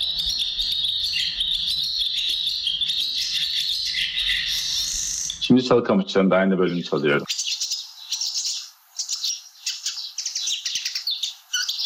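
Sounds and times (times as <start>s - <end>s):
barn swallow song: 0.0s - 11.8s
speech: 5.5s - 7.3s.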